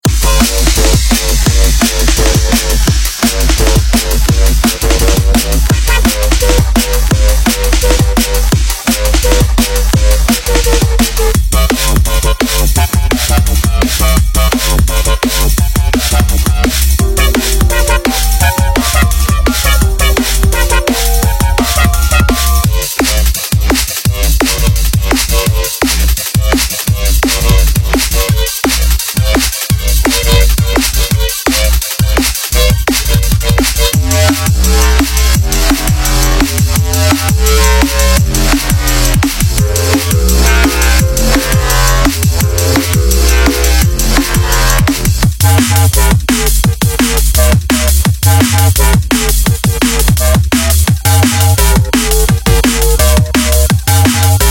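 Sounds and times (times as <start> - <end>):
jump up drum and bass music: 0.0 - 54.4.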